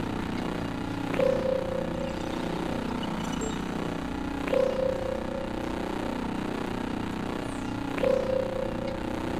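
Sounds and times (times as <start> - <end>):
constant low mechanical whirring hum: 0.0 - 9.3
drones powering up with a click and short mid-pitched tone: 1.1 - 6.3, 8.0 - 9.3.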